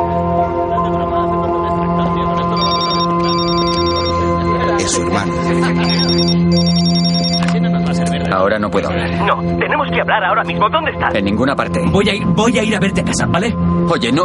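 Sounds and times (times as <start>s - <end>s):
laughter: 0.1s - 3.0s, 4.4s - 6.3s, 7.4s - 9.6s
telephone ringing: 2.5s - 4.4s, 5.8s - 7.5s
speech: 8.5s - 14.2s.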